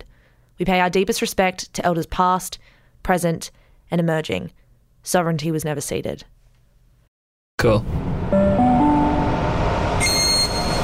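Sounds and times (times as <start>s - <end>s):
speech: 0.6s - 6.4s, 7.6s - 8.5s
train motor whine at a platform: 8.0s - 10.8s
high-pitched chime or whistle: 8.3s - 10.8s.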